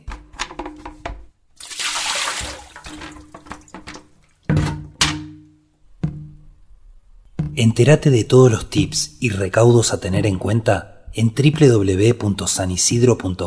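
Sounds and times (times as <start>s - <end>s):
hollow thunks of containers: 0.0s - 1.4s, 2.4s - 6.6s, 7.2s - 7.8s
water pouring from an overturned container: 1.6s - 4.0s
speech: 7.6s - 13.4s.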